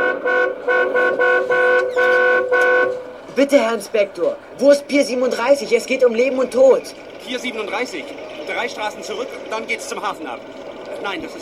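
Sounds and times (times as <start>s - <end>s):
car horn honking while driving alongside a police car: 0.0s - 3.3s
speech: 3.4s - 11.4s.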